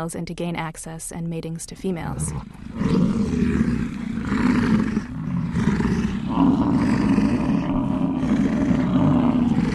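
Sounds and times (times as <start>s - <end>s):
speech: 0.0s - 4.4s, 6.4s - 7.3s
herd of male bison bellowing: 2.2s - 9.7s.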